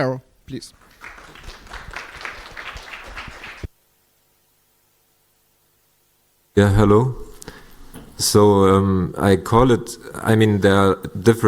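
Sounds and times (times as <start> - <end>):
speech: 0.0 - 1.2, 6.6 - 7.2, 8.2 - 11.4
audience applause: 0.7 - 3.7.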